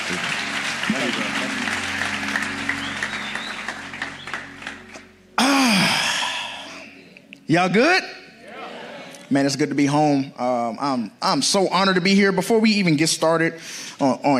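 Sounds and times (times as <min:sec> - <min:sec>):
church congregation clapping to welcome a speaker: 0:00.0 - 0:06.2
speech: 0:00.1 - 0:02.0, 0:07.5 - 0:08.2, 0:09.3 - 0:14.3.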